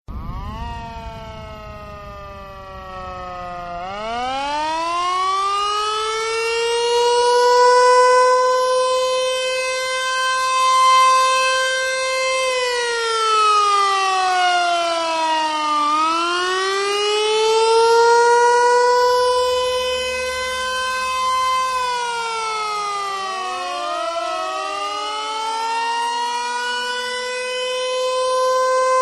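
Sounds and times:
siren: 0:00.1 - 0:29.0.

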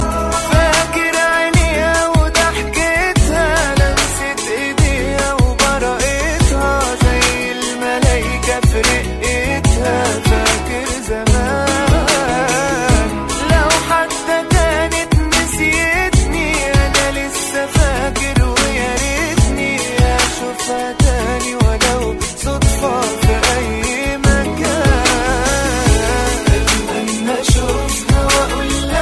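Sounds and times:
Arab music: 0:00.0 - 0:29.0.

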